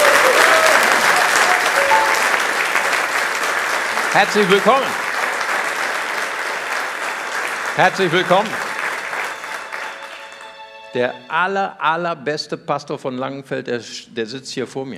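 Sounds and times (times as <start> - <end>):
audience applause: 0.0 - 10.9
speech: 4.2 - 5.0, 7.8 - 8.7, 10.9 - 14.9.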